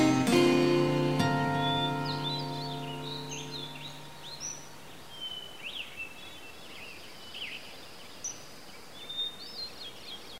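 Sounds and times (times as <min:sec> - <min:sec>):
ambient sound: 0:00.0 - 0:05.1
peaceful guitar: 0:00.0 - 0:05.1.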